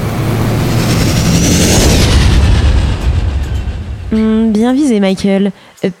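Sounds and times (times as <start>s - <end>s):
spaceship taking off: 0.0s - 4.8s
speech: 4.1s - 5.9s.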